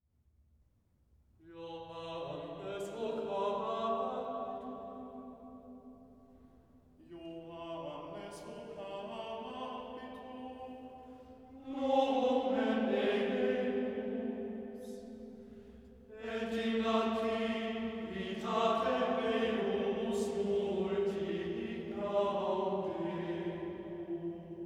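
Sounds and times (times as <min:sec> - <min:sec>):
chorus singing: 0:01.6 - 0:04.9, 0:07.1 - 0:15.4, 0:16.1 - 0:24.6.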